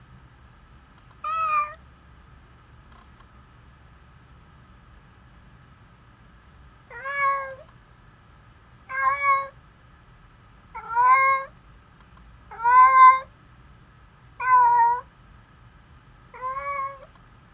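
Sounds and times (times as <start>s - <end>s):
domestic cat meowing: 1.2s - 1.8s, 6.9s - 7.6s, 8.9s - 9.5s, 10.8s - 11.5s, 12.5s - 13.3s, 14.4s - 15.0s, 16.4s - 17.1s.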